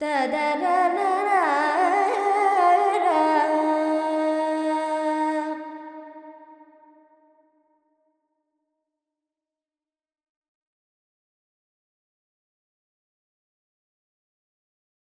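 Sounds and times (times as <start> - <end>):
Carnatic female alap in Lydian with reverb: 0.0 - 6.2.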